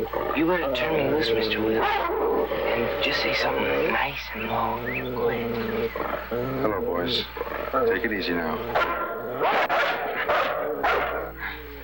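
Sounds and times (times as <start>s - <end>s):
speech: 0.0s - 9.8s
dog barking: 1.8s - 2.2s, 8.7s - 11.8s
dog yipping: 8.8s - 11.2s.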